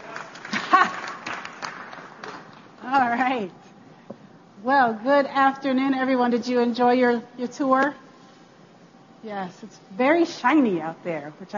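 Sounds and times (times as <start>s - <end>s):
audience clapping: 0.0s - 2.9s
speech: 2.9s - 3.7s, 4.6s - 8.0s, 9.2s - 11.5s.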